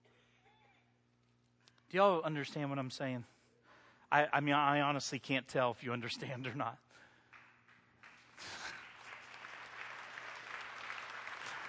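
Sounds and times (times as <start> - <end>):
speech: 1.9 - 3.3, 4.1 - 7.0
audience clapping: 7.1 - 11.6.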